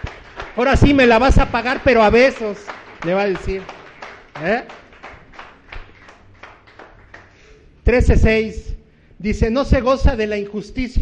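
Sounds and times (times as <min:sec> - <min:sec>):
audience applauding: 0:00.0 - 0:07.6
speech: 0:00.6 - 0:03.8, 0:04.4 - 0:04.8, 0:07.9 - 0:11.0.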